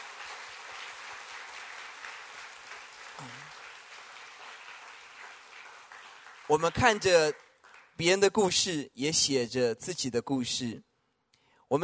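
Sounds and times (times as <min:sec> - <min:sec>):
audience applause: 0:00.0 - 0:08.0
speech: 0:06.5 - 0:07.4, 0:08.0 - 0:10.9.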